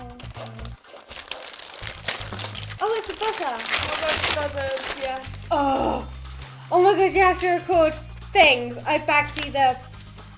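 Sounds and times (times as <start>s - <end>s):
wrapping paper crinkling as a present is unwrapped: 0.2s - 5.6s
speech: 2.9s - 9.9s.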